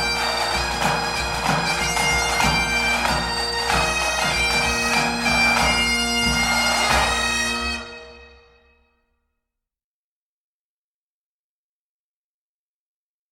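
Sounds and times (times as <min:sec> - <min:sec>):
drums playing a 4/4 march: 0:00.0 - 0:07.9
pipes playing a 4/4 march: 0:00.0 - 0:08.9.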